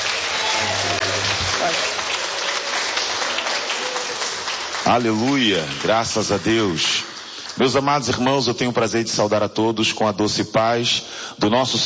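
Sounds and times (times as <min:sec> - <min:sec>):
audience clapping: 0:00.0 - 0:08.8
speech: 0:04.9 - 0:11.8.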